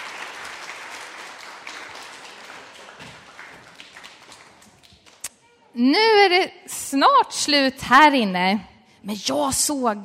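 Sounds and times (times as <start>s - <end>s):
audience applause: 0.0s - 5.2s
speech: 5.8s - 10.0s.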